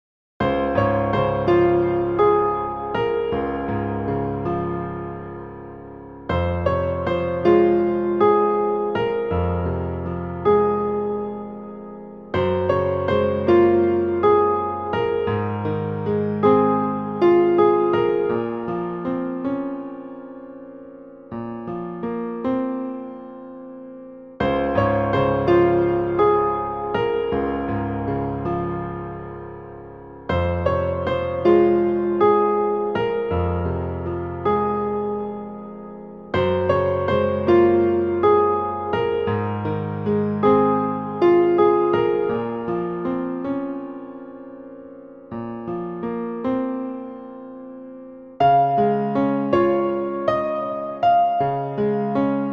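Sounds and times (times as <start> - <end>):
piano: 0.4 - 52.5.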